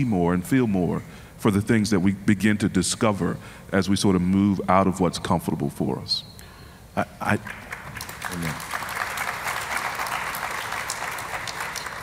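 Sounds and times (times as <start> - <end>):
speech: 0.0 - 6.3, 7.0 - 7.6, 8.3 - 8.8
audience applause: 7.4 - 12.0.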